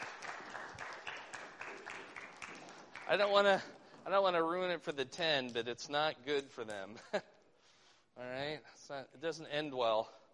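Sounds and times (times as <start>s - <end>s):
audience applause: 0.0s - 3.8s
speech: 3.1s - 7.3s, 8.2s - 10.2s.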